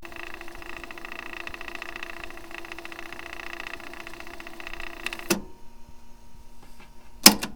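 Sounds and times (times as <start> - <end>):
tape rewinding: 0.0 - 5.5.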